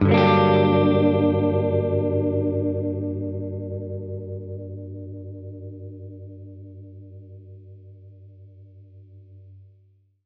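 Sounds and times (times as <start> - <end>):
Gretsch guitar G minor major seventh chord: 0.0 - 6.6.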